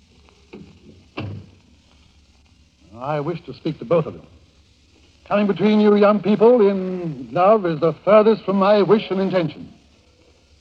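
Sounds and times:
door being closed: 0.6s - 1.6s
speech: 3.0s - 4.4s, 5.3s - 9.8s.

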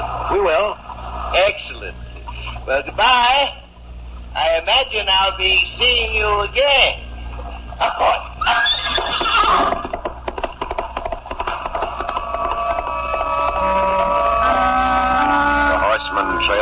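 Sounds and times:
steady tonal background: 0.0s - 8.4s, 11.2s - 16.5s
speech: 0.3s - 2.0s, 2.6s - 3.6s, 4.4s - 7.0s, 7.8s - 9.8s
horse giving a loud shrill whinny: 8.4s - 10.0s
galloping horse hooves: 8.4s - 14.4s.

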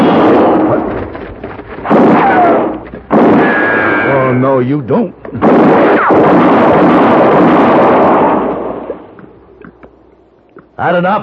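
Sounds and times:
gunshot in a western-style standoff with rolling decay: 0.0s - 1.0s, 1.8s - 4.3s, 5.4s - 9.1s
speech: 4.6s - 6.6s, 10.8s - 11.2s.

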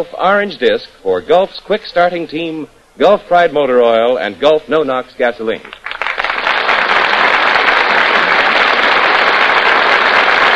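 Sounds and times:
speech: 0.0s - 5.8s
studio audience applause: 5.7s - 10.5s.

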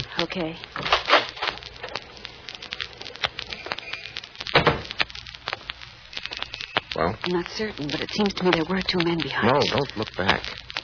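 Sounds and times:
speech: 0.2s - 0.8s, 7.0s - 10.6s
lobby door thump and rattle: 4.5s - 4.9s.

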